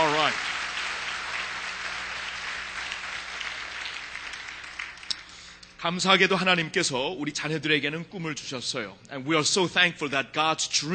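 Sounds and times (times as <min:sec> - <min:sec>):
church congregation clapping: 0:00.0 - 0:05.8
speech: 0:05.8 - 0:10.9.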